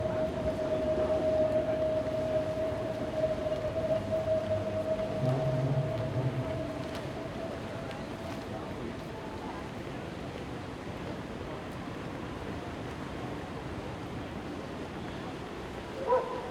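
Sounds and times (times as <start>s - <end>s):
city ambience at Alexanderplatz in Berlin: 0.0s - 16.5s.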